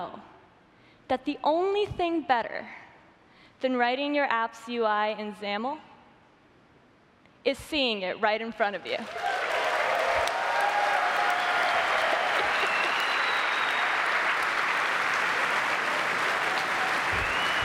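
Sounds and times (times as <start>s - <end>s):
speech: 1.1s - 2.8s, 3.6s - 5.9s, 7.4s - 9.4s
sustained applause from a large audience: 9.0s - 17.6s.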